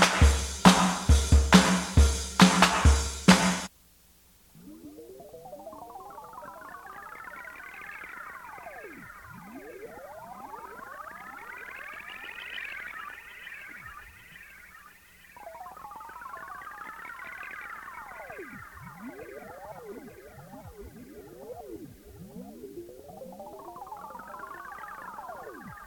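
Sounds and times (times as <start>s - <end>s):
drums: 0.0s - 3.7s.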